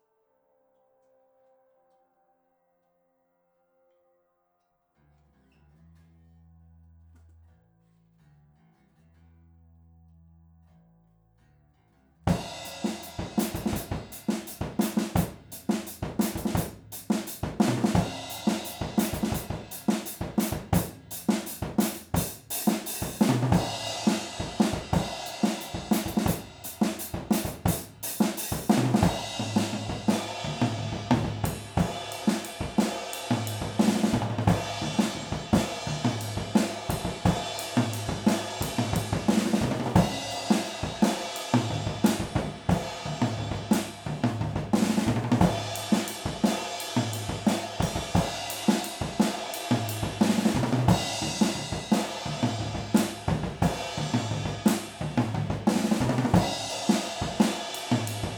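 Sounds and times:
drums: 12.3s - 58.3s.

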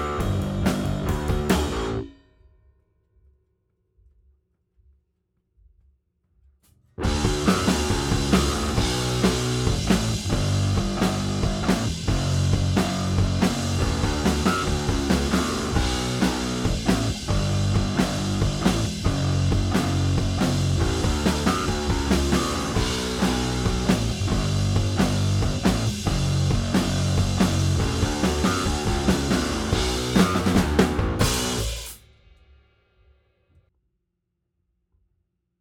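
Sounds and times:
bass: 0.0s - 2.1s, 7.0s - 32.0s
drums: 0.0s - 2.5s, 5.6s - 33.6s.

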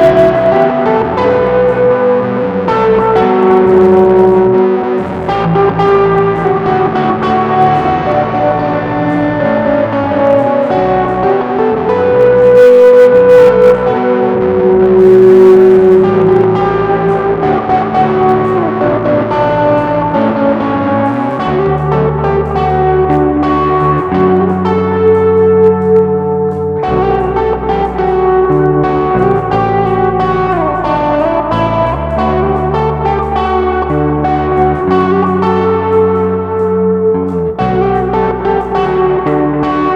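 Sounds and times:
bass in a monitor mix: 0.0s - 39.9s
guitar in a monitor mix: 0.0s - 39.9s.

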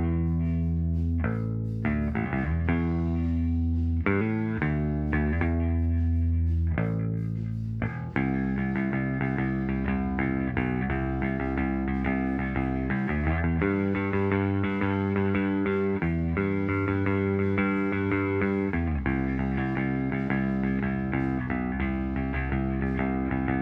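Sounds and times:
mono synth bass: 0.0s - 23.6s.

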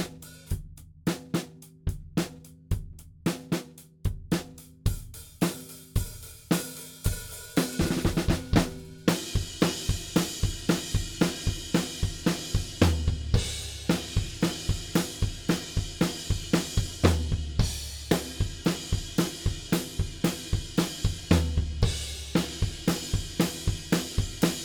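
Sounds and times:
drums playing: 0.0s - 24.6s.

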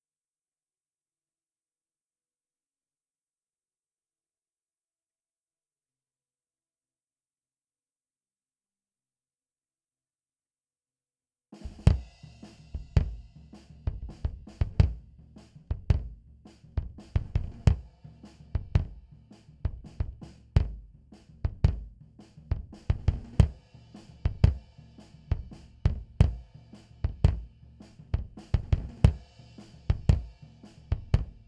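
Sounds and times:
bass drum: 11.6s - 31.4s.

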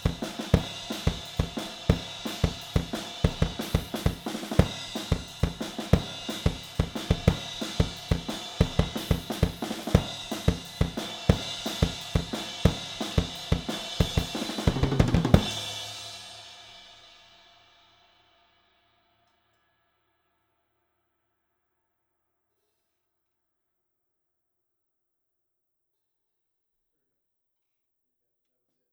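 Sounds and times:
drums recorded with an AKG414 microphone: 0.0s - 18.8s.

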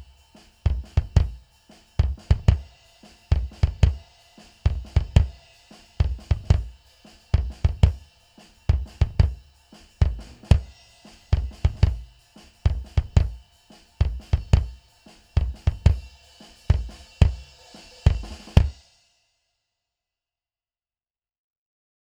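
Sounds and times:
bass drum: 0.0s - 5.4s, 6.0s - 8.1s, 8.7s - 14.8s, 15.4s - 16.1s, 16.7s - 17.5s, 18.1s - 18.8s.

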